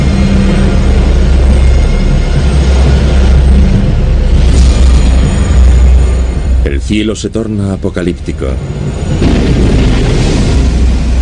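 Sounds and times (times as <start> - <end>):
storm roar: 0.0 - 11.2
thunderclap in a violent storm: 0.0 - 11.2
speech: 6.9 - 8.8.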